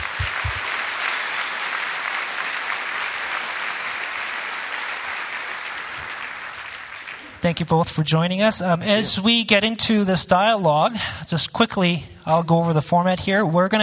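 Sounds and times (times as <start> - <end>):
audience applause welcoming two guests on stage: 0.0 - 7.4
speech: 7.5 - 13.8.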